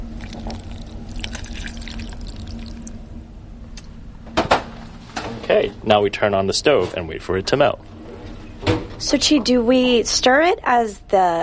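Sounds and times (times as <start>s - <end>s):
water poured onto chocolate in a small saucepan: 0.2s - 3.0s
speech: 5.6s - 8.0s, 9.0s - 11.4s.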